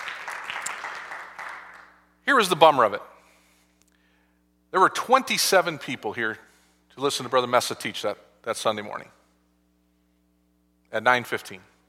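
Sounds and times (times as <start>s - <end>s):
audience clapping: 0.0s - 2.0s
speech: 2.3s - 3.1s, 4.7s - 6.4s, 7.0s - 9.2s, 10.9s - 11.7s.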